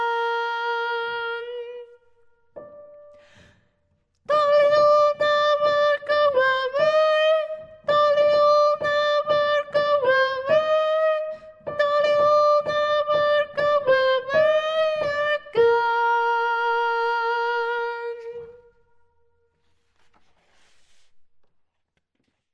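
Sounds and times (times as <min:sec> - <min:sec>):
soprano voice: 0:00.0 - 0:02.7, 0:04.2 - 0:18.8.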